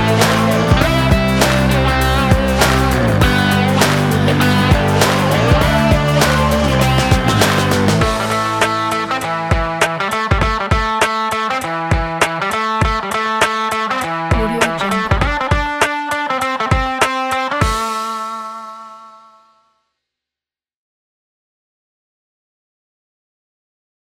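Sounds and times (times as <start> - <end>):
hip hop rock music: 0.0 - 18.7.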